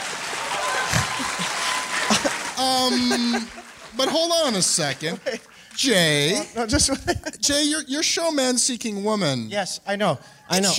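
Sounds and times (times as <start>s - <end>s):
audience applause: 0.0s - 6.3s
laughter: 0.6s - 5.6s, 6.2s - 7.6s
speech: 2.6s - 10.7s.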